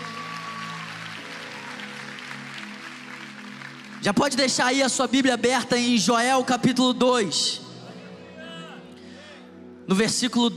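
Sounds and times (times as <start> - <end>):
audience applauding: 0.0 - 5.0
speech: 4.0 - 7.7, 9.9 - 10.5.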